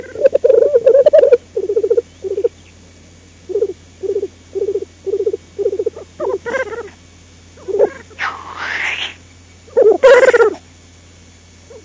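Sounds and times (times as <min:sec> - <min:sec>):
black grouse bubbling coo: 0:00.0 - 0:02.6, 0:03.5 - 0:07.0, 0:07.6 - 0:10.6.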